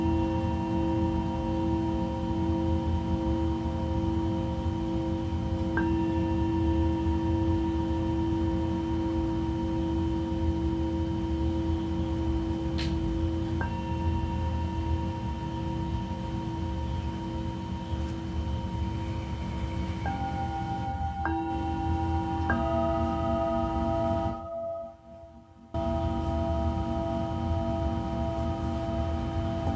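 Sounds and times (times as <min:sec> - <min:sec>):
Tibetan singing bowls ringing in Mexico: 0:00.0 - 0:29.7
low humming drone: 0:00.0 - 0:29.7.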